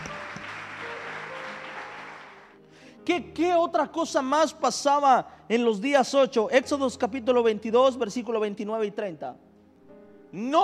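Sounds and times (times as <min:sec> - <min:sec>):
audience applause: 0:00.0 - 0:02.6
speech: 0:03.1 - 0:09.4, 0:10.3 - 0:10.6.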